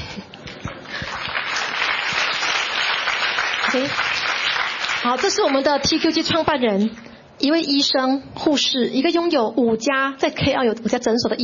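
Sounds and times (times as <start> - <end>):
audience applause: 0.7 - 6.4
speech: 3.7 - 4.1, 5.0 - 11.4.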